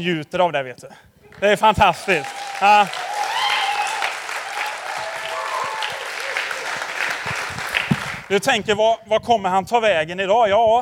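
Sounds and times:
speech: 0.0 - 3.1, 8.3 - 10.8
audience applauding: 1.3 - 8.3.

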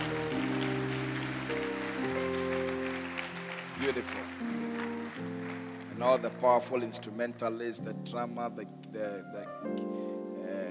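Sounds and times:
audience clapping: 0.0 - 7.4
speech: 3.8 - 4.6, 6.0 - 10.1.

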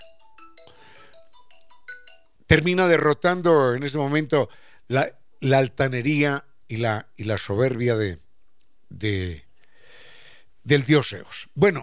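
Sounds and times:
incoming-call telephone ringtone of bright electronic tones: 0.0 - 2.5
speech: 2.5 - 8.2, 8.9 - 9.4, 10.6 - 11.8.

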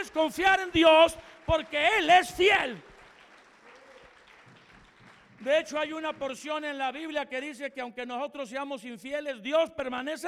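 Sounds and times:
speech: 0.0 - 2.9, 5.4 - 10.2
audience applauding: 0.0 - 6.5.

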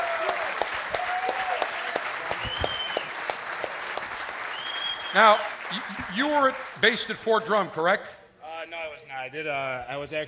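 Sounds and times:
audience applause: 0.0 - 7.1
speech: 5.2 - 8.2, 9.2 - 10.2.

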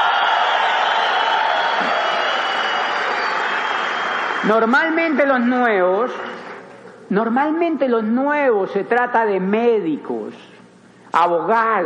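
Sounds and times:
cheers and whoops: 0.0 - 4.7
crowd clapping: 0.0 - 7.0
speech: 4.4 - 6.2, 7.1 - 10.5, 11.1 - 11.8.

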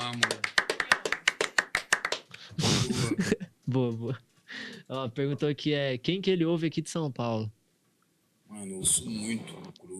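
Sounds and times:
hand clapping: 0.0 - 2.4
speech: 3.2 - 4.3, 4.9 - 7.6, 8.5 - 9.9.

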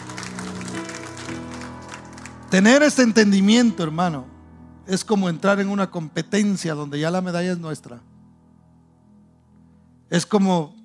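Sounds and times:
audience applause: 0.0 - 2.5
speech: 2.5 - 4.3, 4.9 - 8.1, 10.1 - 10.8.

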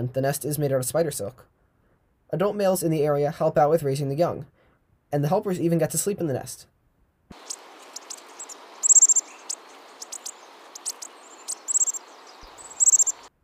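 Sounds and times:
speech: 0.0 - 1.6, 2.3 - 6.7
Bushtit calls: 7.4 - 13.3.

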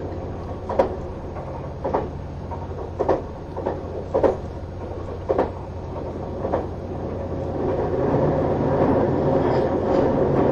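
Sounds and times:
HC85 series Hida 01 train engine and motor humming, Nagoya to Takayama: 0.0 - 10.5
sharp clicks and knocks from the wheels on rail joints: 0.0 - 10.5.

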